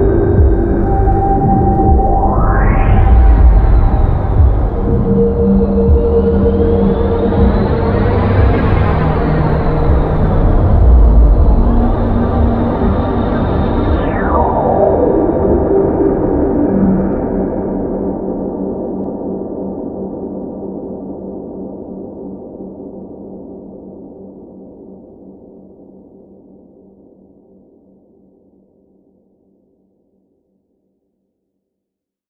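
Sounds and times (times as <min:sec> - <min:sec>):
soundtrack music at 60 BPM: 0:00.0 - 0:19.5.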